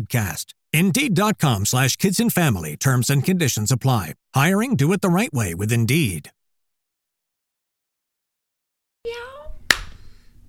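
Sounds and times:
speech: 0.0 - 6.4
single hand clap: 9.7 - 10.0.

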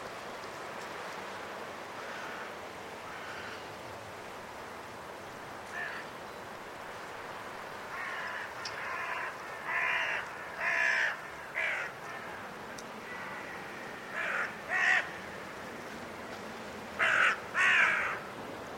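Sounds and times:
group of carrion crows cawing in trees before roosting in winter at Woodchester Park, Gloucestershire: 2.0 - 3.7, 5.7 - 6.1, 7.9 - 15.4, 17.0 - 18.3.

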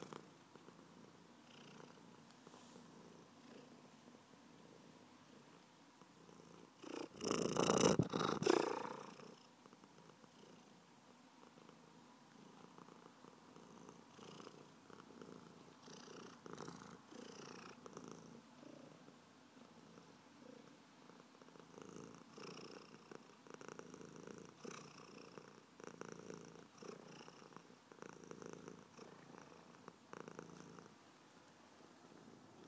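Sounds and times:
purring: 0.0 - 3.9, 4.5 - 10.8, 11.4 - 31.0.

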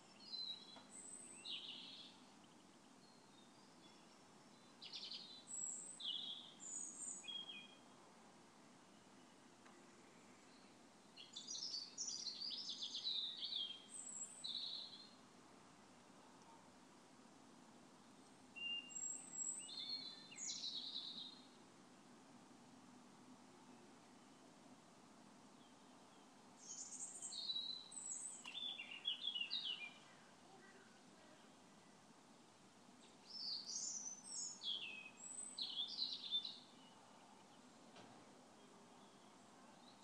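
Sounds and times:
equinox birdsong outside a window: 0.0 - 8.0, 8.8 - 15.3, 18.0 - 21.6, 25.5 - 32.0, 33.0 - 40.0.

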